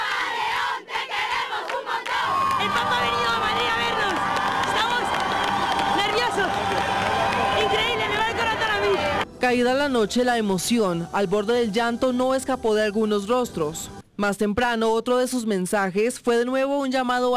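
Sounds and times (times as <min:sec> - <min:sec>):
crowd of faithful singing in unison: 0:00.0 - 0:04.0
crowd of faithful cheering: 0:00.0 - 0:09.3
speech: 0:02.6 - 0:03.2, 0:09.5 - 0:17.3.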